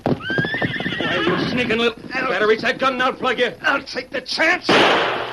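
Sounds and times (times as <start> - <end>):
bronc horse whinnying as a rider mounts: 0.1 - 1.9
speech: 1.6 - 5.2.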